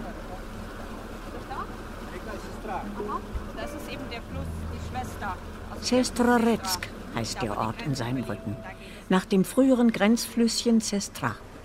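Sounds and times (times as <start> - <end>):
splashing water: 0.0 - 9.8
small motorboat engine leaving harbour: 0.0 - 11.6
speech: 2.7 - 11.5.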